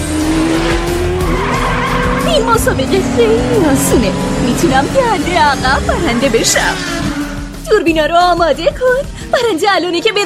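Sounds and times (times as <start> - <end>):
race car tyres screeching: 0.0 - 7.8
race car engine roar: 0.0 - 8.7
speech: 2.6 - 10.2.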